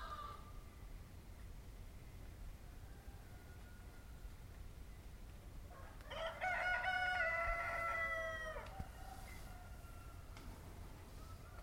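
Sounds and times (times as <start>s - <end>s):
roosters crowing in Paraty Brazil: 2.6s - 4.3s, 5.7s - 11.6s.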